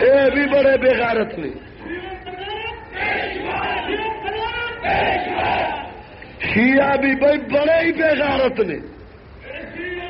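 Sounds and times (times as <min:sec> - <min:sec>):
speech: 0:00.0 - 0:02.3, 0:06.6 - 0:08.9
crowd chanting slogans: 0:02.8 - 0:06.1.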